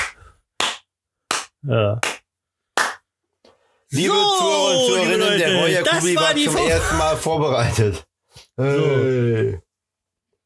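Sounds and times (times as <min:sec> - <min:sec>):
speech: 0:01.6 - 0:02.1, 0:03.9 - 0:09.6
applause: 0:02.8 - 0:03.0.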